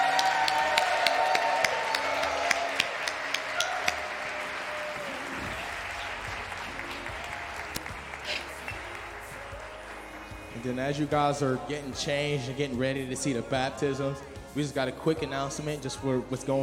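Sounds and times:
audience applause: 0:00.0 - 0:10.8
speech: 0:10.6 - 0:16.6.

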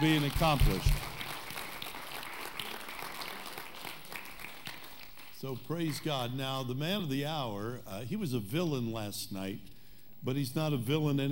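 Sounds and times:
speech: 0:00.0 - 0:01.1, 0:05.4 - 0:11.3
audience round of applause: 0:00.0 - 0:05.4.

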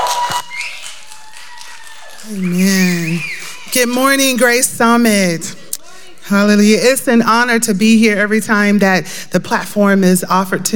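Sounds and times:
crowd clapping: 0:00.0 - 0:04.8
speech: 0:02.2 - 0:05.6, 0:06.3 - 0:10.7.

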